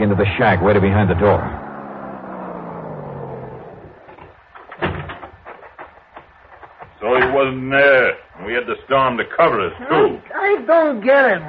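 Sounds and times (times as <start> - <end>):
speech: 0.0 - 1.6, 7.4 - 11.4
hot rod car driving down soggy wagon road: 0.6 - 4.6.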